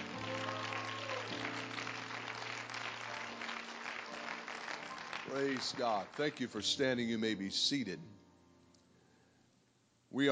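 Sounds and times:
audience clapping hands: 0.0 - 6.7
speech: 5.3 - 8.2, 10.1 - 10.3.

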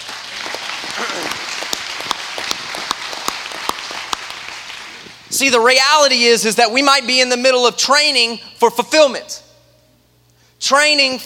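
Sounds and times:
audience clapping: 0.0 - 5.3
speech: 1.0 - 1.5, 5.4 - 9.4, 10.6 - 11.2.

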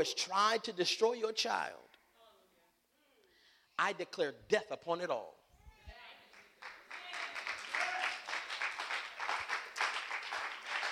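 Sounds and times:
speech: 0.0 - 1.9, 3.8 - 5.4
audience clapping: 6.3 - 10.9.

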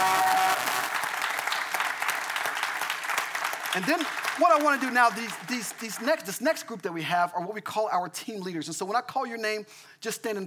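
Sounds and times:
audience applause: 0.0 - 6.2
speech: 3.7 - 10.4.

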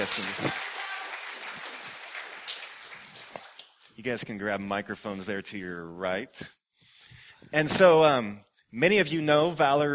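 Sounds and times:
speech: 0.0 - 0.7, 4.0 - 6.6, 7.5 - 9.9
audience applause: 0.0 - 3.8.

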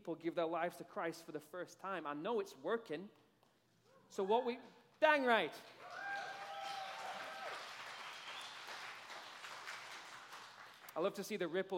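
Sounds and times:
speech: 0.0 - 3.2, 4.1 - 5.8, 11.0 - 11.7
audience clapping in church: 5.7 - 11.3.

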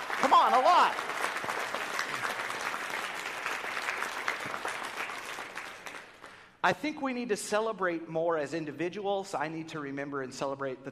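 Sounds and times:
audience applause: 0.0 - 6.5
speech: 6.6 - 10.8.

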